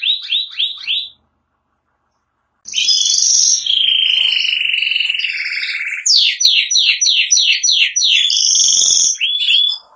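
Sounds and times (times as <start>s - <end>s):
Spanish giboso canary song: 0.0s - 9.9s.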